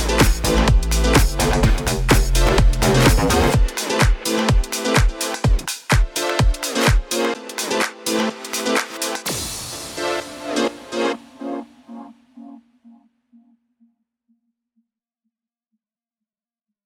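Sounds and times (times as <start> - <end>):
future house music: 0.0 - 12.1.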